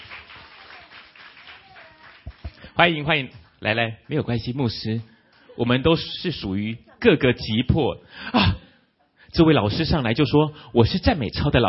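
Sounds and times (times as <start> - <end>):
church gathering clapping to welcome a volunteer: 0.0 - 5.6
speech: 2.8 - 8.6, 9.3 - 11.6.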